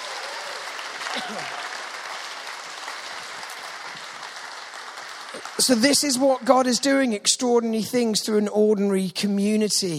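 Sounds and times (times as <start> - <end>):
audience applause: 0.0 - 7.0
speech: 1.2 - 1.6, 5.4 - 9.9.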